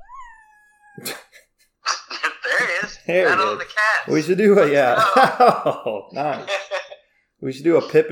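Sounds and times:
cat meowing: 0:00.0 - 0:01.0
laughter: 0:01.9 - 0:08.1
speech: 0:03.1 - 0:06.6, 0:07.4 - 0:08.1.

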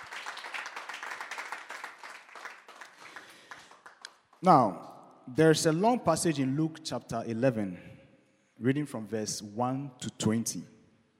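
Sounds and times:
audience clapping: 0:00.0 - 0:04.5
speech: 0:04.4 - 0:08.0, 0:08.6 - 0:10.8.

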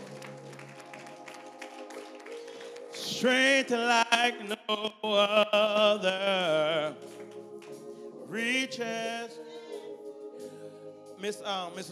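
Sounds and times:
congregation clapping hands during a worship service: 0:00.0 - 0:04.6, 0:05.8 - 0:09.1
dense sustained musical background: 0:00.0 - 0:11.8
speech: 0:03.2 - 0:07.1, 0:08.3 - 0:09.5, 0:11.2 - 0:11.8.

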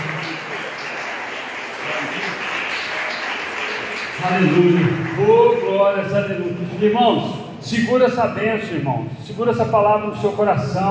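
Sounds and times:
audience applause: 0:00.0 - 0:06.0
speech: 0:04.2 - 0:10.8.

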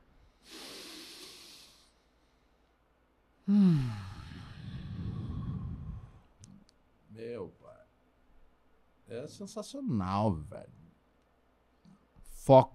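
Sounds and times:
deep breath in during a guided breathing exercise: 0:00.3 - 0:02.2, 0:03.5 - 0:06.3
voiced breath out sinking into a long soft sigh: 0:03.5 - 0:05.8
speech: 0:09.1 - 0:10.8, 0:12.5 - 0:12.7.

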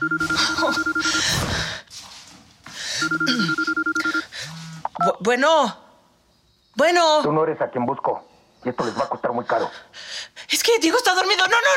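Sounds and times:
telephone ringing: 0:00.0 - 0:01.4, 0:03.0 - 0:04.3
speech: 0:05.3 - 0:05.8, 0:06.8 - 0:11.7.

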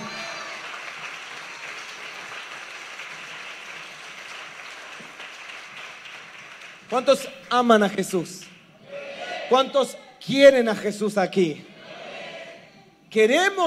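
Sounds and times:
audience applause: 0:00.0 - 0:07.2
speech: 0:06.9 - 0:08.5, 0:09.5 - 0:11.7, 0:13.1 - 0:13.6.

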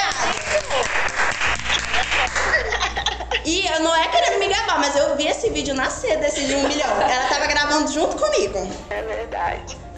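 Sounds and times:
small group applause: 0:00.0 - 0:02.7
laughter: 0:00.1 - 0:04.5, 0:06.4 - 0:07.7
speech: 0:04.8 - 0:09.8.

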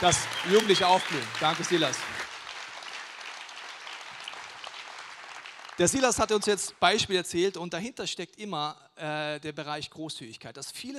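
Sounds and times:
speech: 0:00.0 - 0:02.2, 0:05.8 - 0:10.9
audience applause: 0:00.0 - 0:06.2.

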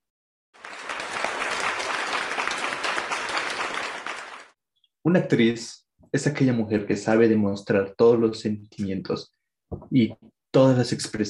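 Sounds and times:
crowd applause: 0:00.6 - 0:04.6
speech: 0:05.0 - 0:11.2.

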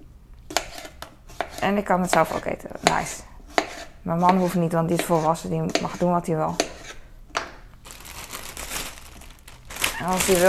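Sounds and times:
speech: 0:01.6 - 0:03.3, 0:04.0 - 0:06.7, 0:10.0 - 0:10.4
plastic bag with a press seal rustling: 0:07.8 - 0:10.4.

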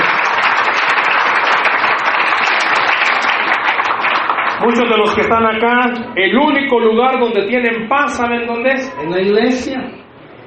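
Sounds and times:
audience applause: 0:00.0 - 0:05.3
speech: 0:04.7 - 0:10.0.

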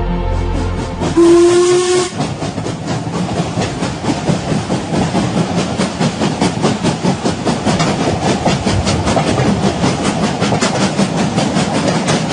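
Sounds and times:
steam train chuffing and hissing: 0:00.2 - 0:12.3
steam train whistle blast: 0:01.1 - 0:02.3.

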